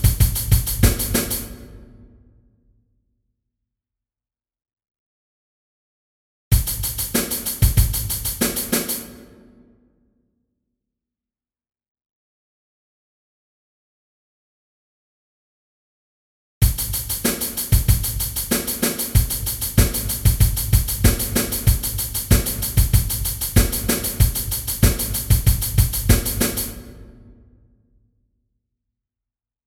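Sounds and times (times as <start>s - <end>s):
drum loop: 0.0s - 1.8s, 6.5s - 9.0s, 16.6s - 27.2s.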